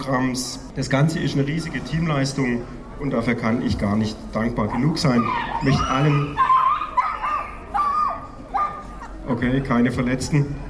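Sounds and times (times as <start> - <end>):
speech: 0.0 - 6.5, 9.3 - 10.6
small dogs yipping and whining barks: 4.7 - 9.3.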